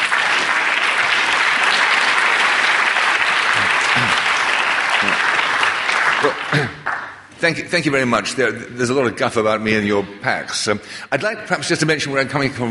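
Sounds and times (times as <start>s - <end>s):
large audience applause: 0.0s - 7.3s
speech: 7.4s - 12.6s.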